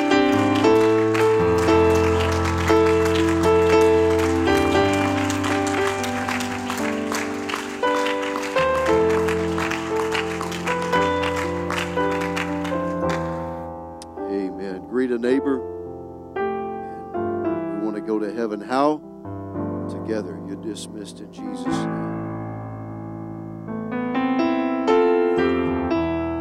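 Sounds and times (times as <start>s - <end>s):
audience hand clapping: 0.0s - 13.6s
sustained loud keyboard chords: 0.0s - 26.3s.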